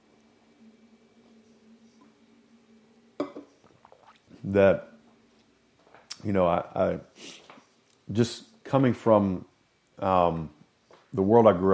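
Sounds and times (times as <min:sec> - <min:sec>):
sipping coffee from a mug: 0:03.2 - 0:04.4
speech: 0:04.4 - 0:04.9, 0:06.2 - 0:07.4, 0:08.1 - 0:11.7.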